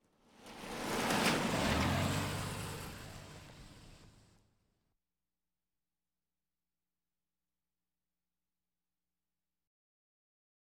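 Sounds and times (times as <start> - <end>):
various automobiles: 0.1 - 4.4.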